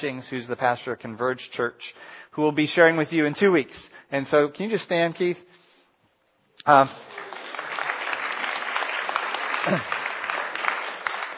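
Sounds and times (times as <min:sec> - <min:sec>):
speech: 0:00.0 - 0:05.5, 0:06.6 - 0:07.3, 0:09.6 - 0:10.0
audience applause: 0:06.9 - 0:11.3.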